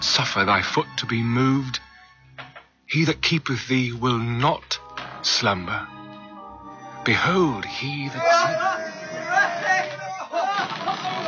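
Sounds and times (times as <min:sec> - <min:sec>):
speech: 0:00.2 - 0:01.8, 0:02.9 - 0:06.0, 0:07.1 - 0:08.9
crowd cheering: 0:07.9 - 0:11.2.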